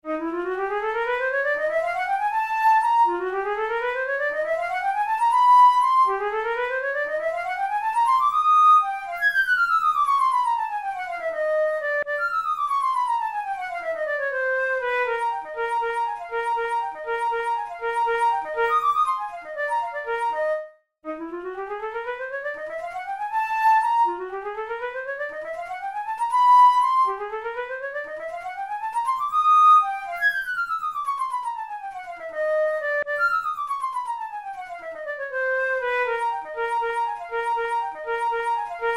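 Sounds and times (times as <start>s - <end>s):
flute tunes playing melodic exercises: 0.0s - 38.9s.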